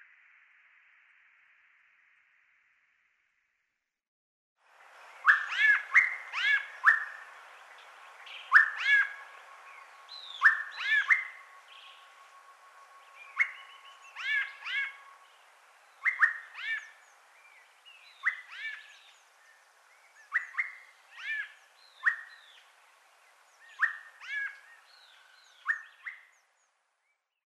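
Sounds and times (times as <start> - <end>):
Turdus albicollis white-necked thrush calling: 4.9 - 22.8, 23.6 - 26.4.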